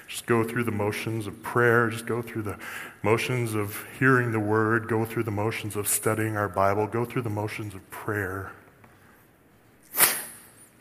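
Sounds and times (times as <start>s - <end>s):
speech: 0.2s - 8.6s
sniffle: 9.8s - 10.7s.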